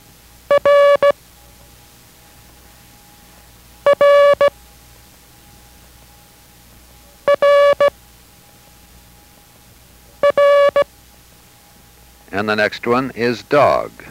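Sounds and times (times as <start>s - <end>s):
quiet hum: 0.0s - 14.0s
Morse code letter R tone: 0.5s - 1.2s, 3.8s - 4.6s, 7.2s - 8.0s, 10.2s - 10.9s
speech: 12.3s - 14.0s.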